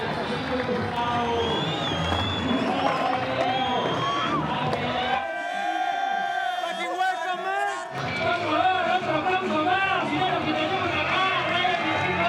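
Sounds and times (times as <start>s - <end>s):
large crowd cheering: 0.0s - 12.2s.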